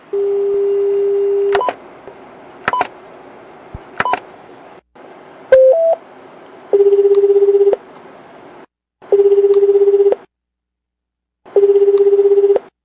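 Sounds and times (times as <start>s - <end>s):
telephone dial tone: 0.2s - 1.5s, 6.8s - 7.8s, 9.1s - 10.2s, 11.6s - 12.6s
telephone keypad beeps dialing emergency number 110: 5.6s - 6.0s.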